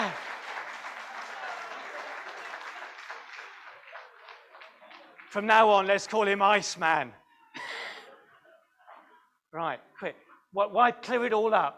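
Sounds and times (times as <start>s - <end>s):
applause: 0.0s - 6.4s
speech: 5.3s - 7.2s, 9.5s - 11.7s.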